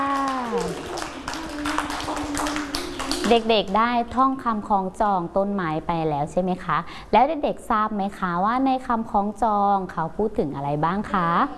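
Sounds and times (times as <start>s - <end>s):
children clapping: 0.0s - 3.9s
speech: 3.3s - 11.5s.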